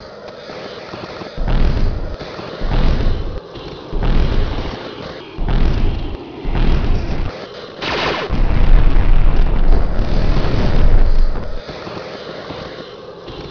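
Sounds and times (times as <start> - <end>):
robot: 1.4 - 11.6.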